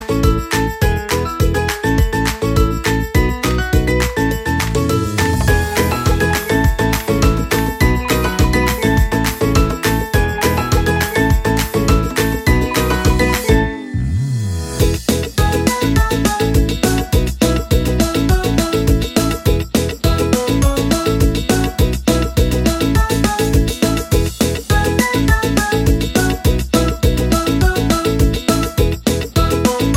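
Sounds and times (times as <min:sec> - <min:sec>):
upbeat cheerful music: 0:00.0 - 0:29.9.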